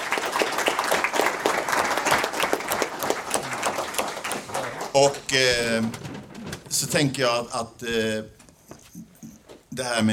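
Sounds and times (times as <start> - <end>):
crowd applause: 0.0 - 6.2
speech: 5.0 - 6.1, 6.7 - 8.4, 9.8 - 10.1.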